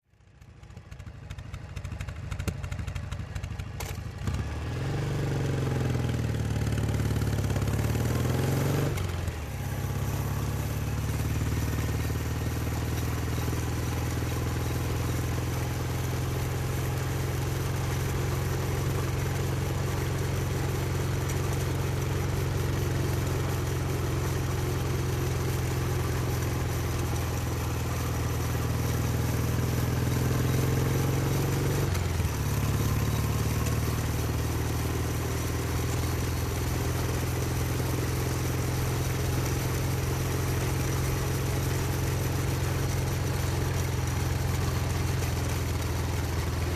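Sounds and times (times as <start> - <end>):
Norton motorcycle riding steadily at medium speed: 0.1 - 46.7.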